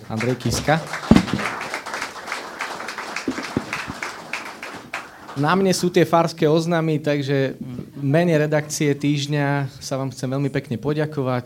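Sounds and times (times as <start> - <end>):
audience applause: 0.0 - 5.7
speech: 0.1 - 1.1, 5.4 - 11.4.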